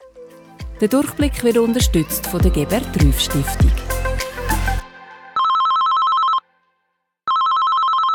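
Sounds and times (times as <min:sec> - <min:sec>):
speech: 0:00.8 - 0:03.9
telephone ringing: 0:05.4 - 0:06.4, 0:07.3 - 0:08.1.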